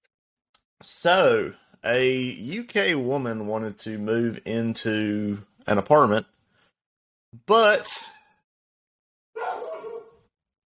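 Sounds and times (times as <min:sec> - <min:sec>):
speech: 0:00.8 - 0:06.3, 0:07.3 - 0:08.2
dog barking: 0:09.4 - 0:10.3.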